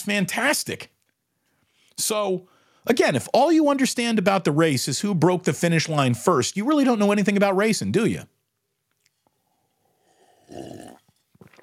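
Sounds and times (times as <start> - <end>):
speech: 0.0 - 1.0, 2.0 - 8.4
slurp of hot coffee: 9.1 - 11.6
gulp: 10.1 - 11.6.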